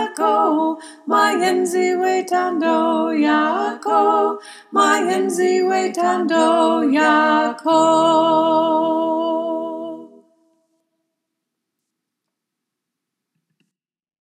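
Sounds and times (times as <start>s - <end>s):
choir with soprano: 0.0s - 10.3s.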